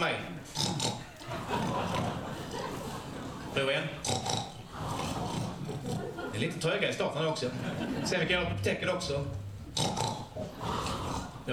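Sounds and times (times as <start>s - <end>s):
speech: 0.0s - 0.6s, 3.6s - 4.2s, 6.4s - 9.9s
audience members grunting in imitation of pigs: 0.5s - 6.4s, 9.4s - 11.5s
laughter: 1.0s - 3.8s, 4.8s - 9.5s.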